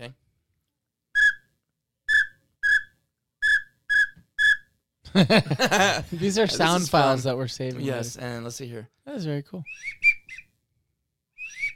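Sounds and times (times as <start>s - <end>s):
speech: 0.0s - 0.2s, 5.2s - 10.0s
widgeon duck whistle call: 1.2s - 1.5s, 2.1s - 4.7s, 9.7s - 10.4s, 11.4s - 11.7s
laughter: 5.1s - 7.1s.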